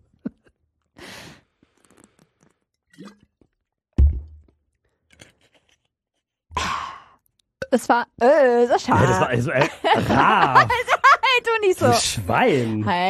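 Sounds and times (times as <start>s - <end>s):
person drinking a sip of water: 1.4s - 3.7s
dull low thunk: 4.0s - 4.4s
speech: 7.7s - 13.0s
laughter: 8.8s - 12.8s.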